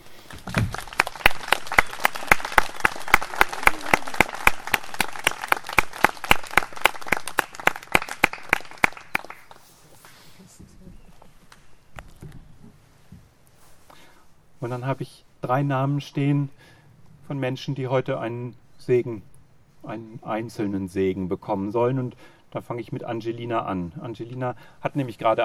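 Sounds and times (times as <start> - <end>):
audience applause: 0.0 - 9.6
speech: 14.7 - 16.7, 17.3 - 25.4.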